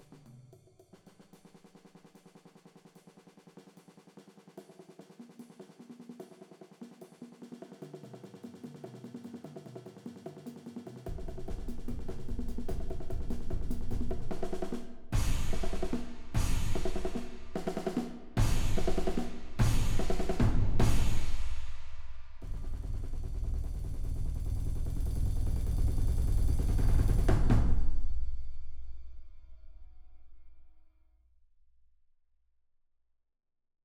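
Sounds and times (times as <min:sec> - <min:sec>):
snare drum: 0:00.9 - 0:27.9
bongos: 0:03.8 - 0:27.8
concert bass drum: 0:11.1 - 0:27.9
crash cymbal: 0:15.1 - 0:30.5.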